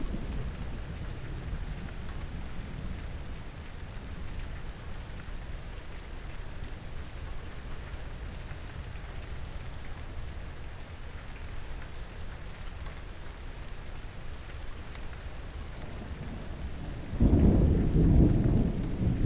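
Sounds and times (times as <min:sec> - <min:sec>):
thunder: 0:00.0 - 0:01.9, 0:15.8 - 0:19.2.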